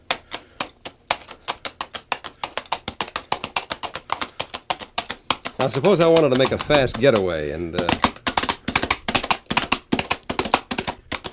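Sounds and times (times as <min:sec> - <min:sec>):
coconut shells knocked together imitating horse hooves walking: 0:00.0 - 0:11.3
speech: 0:05.6 - 0:08.1.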